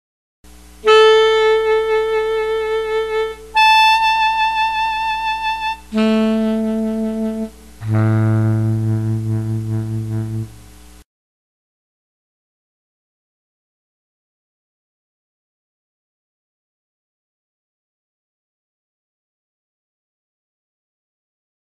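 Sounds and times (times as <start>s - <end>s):
series of A notes on saxophones: 0.8s - 10.6s.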